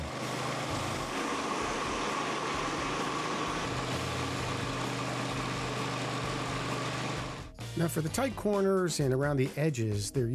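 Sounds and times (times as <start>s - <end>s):
concrete floor grinder running: 0.0s - 7.5s
speech: 7.8s - 10.3s.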